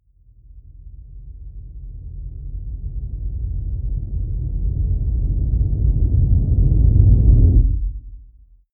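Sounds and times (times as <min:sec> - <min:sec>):
deep noise rumble: 0:01.5 - 0:08.4.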